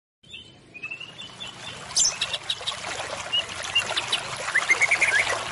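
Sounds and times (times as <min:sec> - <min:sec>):
white-rumped shama lure call song of high whistled notes: 0:00.2 - 0:05.4.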